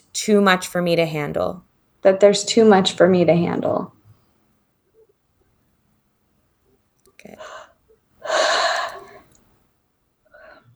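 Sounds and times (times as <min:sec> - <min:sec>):
speech: 0:00.2 - 0:04.0
deep breath: 0:07.2 - 0:09.4.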